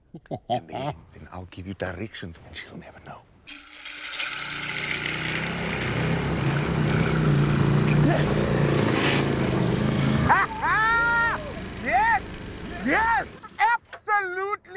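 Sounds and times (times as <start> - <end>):
laughter: 0.1 - 1.0, 10.1 - 13.9
speech: 0.2 - 3.6
V-twin 1000 cc motorbike engine on sandy ground: 4.2 - 13.6.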